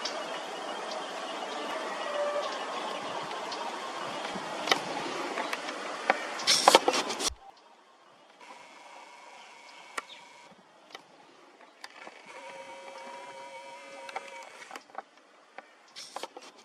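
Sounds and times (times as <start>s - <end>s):
Blyth's reed warbler singing: 0.0s - 7.7s.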